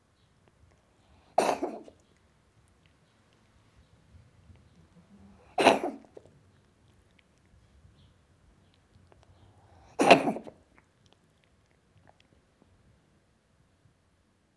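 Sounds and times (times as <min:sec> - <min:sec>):
cat coughing: 0:01.4 - 0:02.0, 0:05.4 - 0:06.1, 0:10.0 - 0:10.6.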